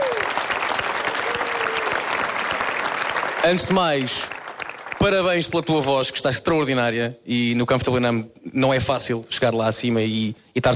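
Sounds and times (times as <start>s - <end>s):
audience applause: 0.0s - 5.2s
speech: 3.4s - 4.4s, 5.0s - 10.7s.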